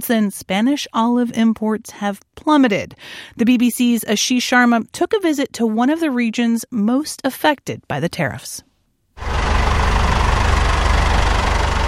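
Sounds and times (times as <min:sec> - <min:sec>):
speech: 0:00.0 - 0:09.4
tractor loaded with olives idling at weighing bay: 0:09.2 - 0:11.8.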